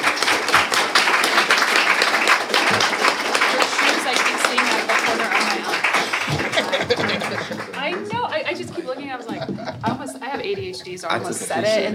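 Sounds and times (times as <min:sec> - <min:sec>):
audience applause at the close of a religious freedom panel: 0:00.0 - 0:10.1
laughter: 0:02.6 - 0:11.9
speech: 0:10.9 - 0:11.9.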